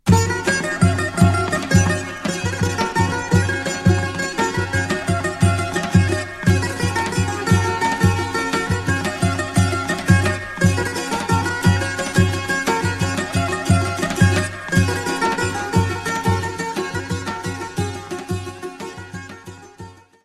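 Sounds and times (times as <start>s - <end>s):
Macedonian oro folk dance tune: 0.0s - 20.2s.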